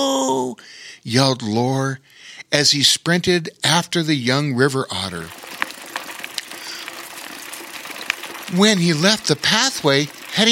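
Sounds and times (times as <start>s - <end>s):
speech: 0.0s - 5.4s, 8.5s - 10.4s
bicycle riding over rough ground: 5.3s - 9.0s.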